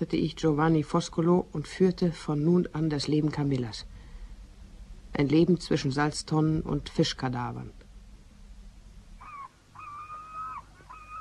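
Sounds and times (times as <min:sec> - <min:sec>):
speech: 0:00.0 - 0:03.9, 0:05.2 - 0:07.8
seagulls crying: 0:09.2 - 0:11.2.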